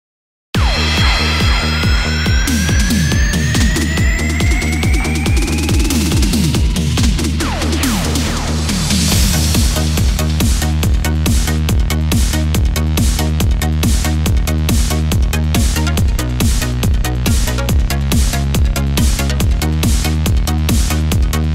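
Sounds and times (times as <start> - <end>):
disco party music: 0.6 - 21.5.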